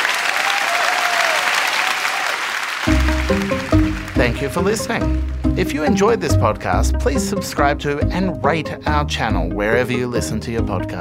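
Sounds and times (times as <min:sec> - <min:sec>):
audience applause: 0:00.0 - 0:05.6
speech: 0:03.3 - 0:03.6, 0:04.2 - 0:10.9.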